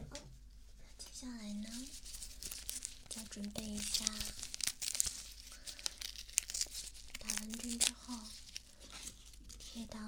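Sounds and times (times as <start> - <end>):
medical adhesive tape being torn: 1.8 - 9.7
speech: 3.4 - 4.4, 9.8 - 10.0.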